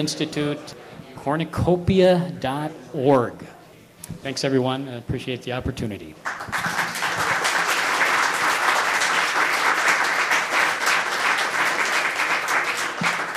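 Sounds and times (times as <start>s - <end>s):
speech: 0.0s - 6.8s
audience applause: 6.3s - 13.3s.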